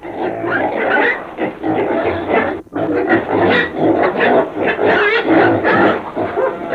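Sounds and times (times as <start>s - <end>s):
pig grunting: 0.0s - 6.7s.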